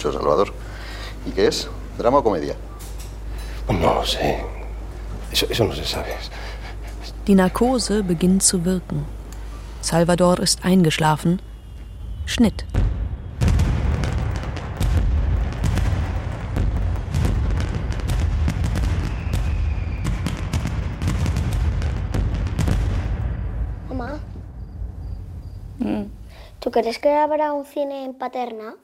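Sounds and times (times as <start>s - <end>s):
speech: 0.0s - 2.7s, 3.7s - 4.6s, 5.3s - 6.6s, 7.2s - 9.2s, 9.8s - 11.5s, 12.3s - 12.8s, 26.8s - 28.8s
fireworks exploding in the night sky: 11.5s - 26.3s.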